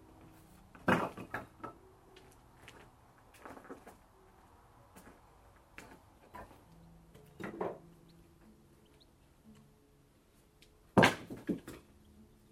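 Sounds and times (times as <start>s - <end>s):
wood chopping: 0.8s - 1.6s, 11.0s - 11.9s.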